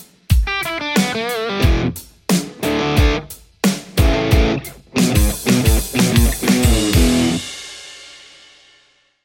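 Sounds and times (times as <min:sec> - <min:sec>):
electric guitar: 0:00.4 - 0:03.3, 0:03.9 - 0:07.5.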